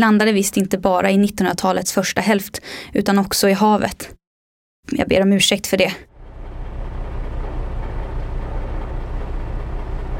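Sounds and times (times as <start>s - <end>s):
speech: 0.0s - 4.2s, 4.8s - 6.1s
submarine engine running: 6.0s - 10.1s.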